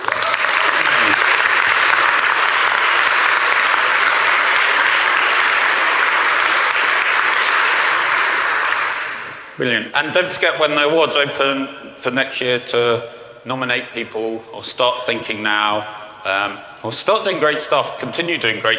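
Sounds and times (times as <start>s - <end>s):
audience applause: 0.0s - 9.5s
speech: 9.6s - 18.7s.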